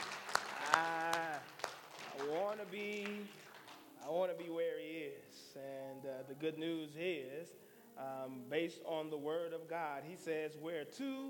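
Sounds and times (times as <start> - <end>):
audience hand clapping: 0.0 - 4.6
speech: 5.6 - 11.2.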